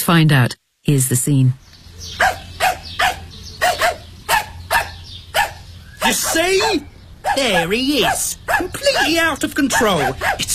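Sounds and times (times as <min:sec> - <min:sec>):
speech: 0:00.1 - 0:02.4, 0:06.1 - 0:10.5
dog barking: 0:02.2 - 0:10.5.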